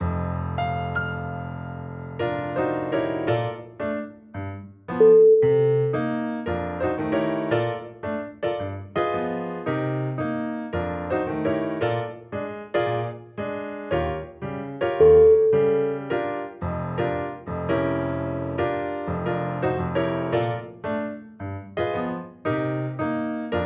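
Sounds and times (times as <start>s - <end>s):
clown piano: 0.0s - 23.6s.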